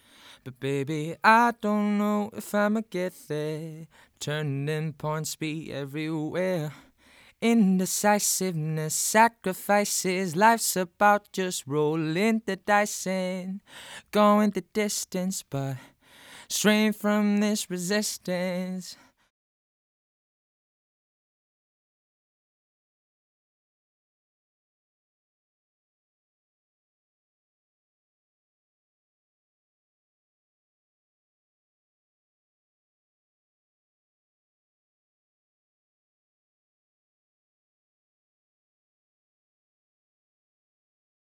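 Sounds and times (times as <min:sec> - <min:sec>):
equalized vocals: 0:00.3 - 0:19.1.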